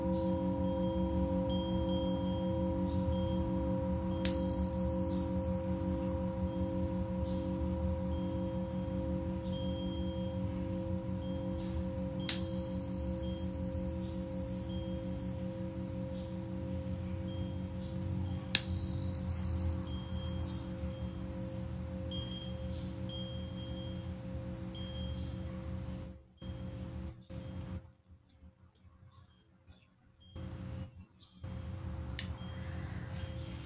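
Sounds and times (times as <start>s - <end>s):
Tibetan singing bowl strikes ringing: 0.0s - 26.7s
Tibetan singing bowls humming drone: 0.0s - 27.8s, 30.4s - 33.6s.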